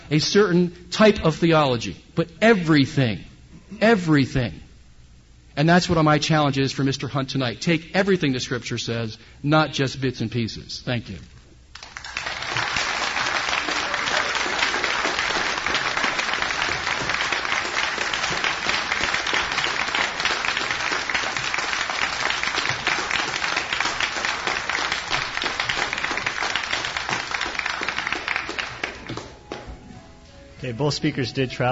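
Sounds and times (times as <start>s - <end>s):
speech: 0.1s - 4.6s, 5.6s - 11.3s, 30.8s - 31.7s
audience applause: 11.7s - 29.4s.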